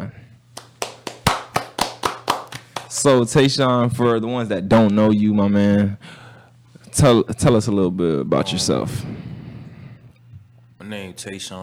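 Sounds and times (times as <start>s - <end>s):
round of applause: 0.6s - 3.1s
speech: 3.0s - 6.2s, 7.0s - 9.3s, 11.2s - 11.6s.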